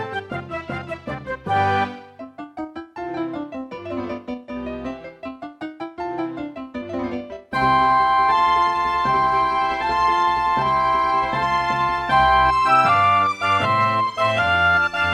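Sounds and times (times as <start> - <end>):
classical concerto excerpt played on a Roland XV-2020: 0.0 - 2.5, 6.3 - 15.1.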